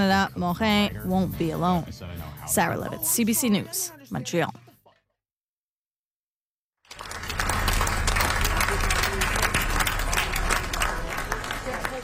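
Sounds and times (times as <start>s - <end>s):
speech: 0.0s - 4.6s
crowd applauding in street as hearse passes: 6.8s - 12.0s.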